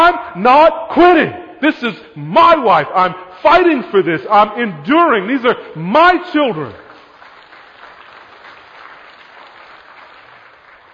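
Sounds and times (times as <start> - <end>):
speech: 0.1 - 6.8
large audience applause: 6.9 - 10.9.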